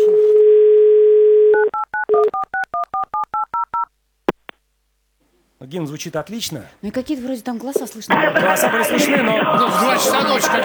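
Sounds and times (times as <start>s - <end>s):
touch-tone dialing beeps: 0.5s - 3.9s
speech: 5.7s - 10.6s
laughter: 8.1s - 10.6s.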